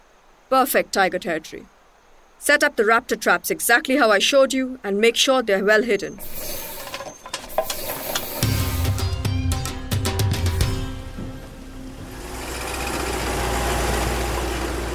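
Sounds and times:
speech: 0.5s - 1.8s, 2.4s - 6.7s
vehicle engine humming on a forest track: 6.2s - 14.9s.

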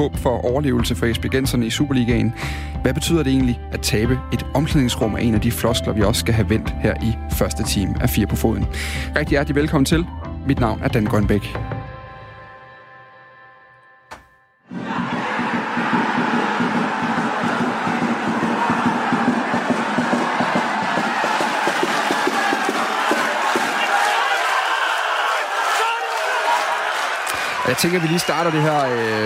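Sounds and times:
speech: 0.0s - 11.8s, 27.8s - 29.2s
football stadium fans cheering: 14.7s - 29.2s.

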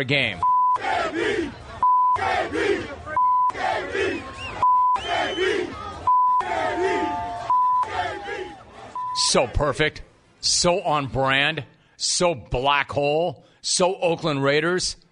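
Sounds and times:
speech: 0.0s - 4.3s, 9.2s - 15.0s
stadium crowd chanting: 0.7s - 9.8s.

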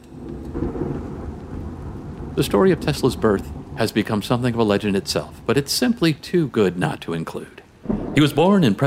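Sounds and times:
constant hiss of falling rain: 0.0s - 8.8s
deep rolling rumble of thunder: 0.1s - 7.0s, 7.8s - 8.8s
speech: 2.4s - 8.8s.

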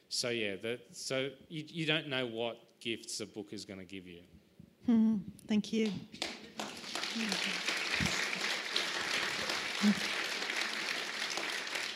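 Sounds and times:
speech: 0.1s - 6.3s, 7.1s - 8.1s, 9.8s - 10.2s
audience clapping: 5.8s - 11.9s.

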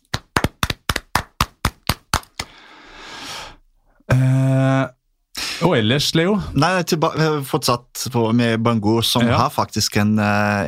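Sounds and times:
short burst of applause: 0.0s - 2.6s
speech: 5.7s - 10.6s.

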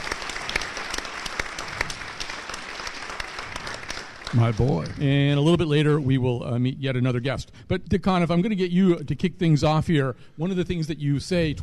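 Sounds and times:
crowd applauding: 0.0s - 5.5s
speech: 4.3s - 11.6s.

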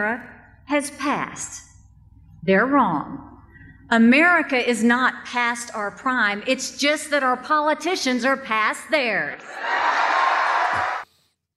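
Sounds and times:
speech: 0.0s - 1.7s, 2.4s - 3.3s, 3.9s - 10.0s
packed hall audience cheering: 9.4s - 11.0s.

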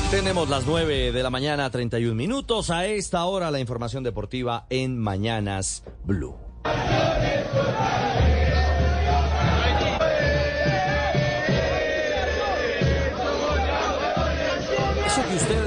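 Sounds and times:
speech: 0.1s - 8.1s
football fans chanting welcoming team at airport: 6.7s - 15.6s.

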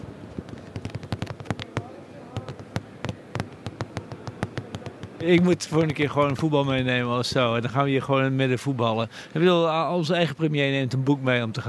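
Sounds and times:
faint hum: 0.0s - 11.6s
chair being banged together with wooden knocks: 0.3s - 6.5s
speech: 5.2s - 11.6s.

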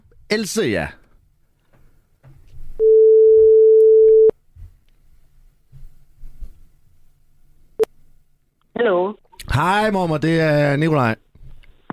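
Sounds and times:
speech: 0.3s - 1.0s, 9.6s - 11.2s
telephone ringing tone while calling: 2.8s - 4.3s.

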